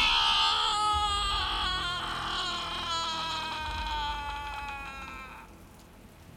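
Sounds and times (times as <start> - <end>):
loud scream echoing through a mansion: 0.0 - 5.6.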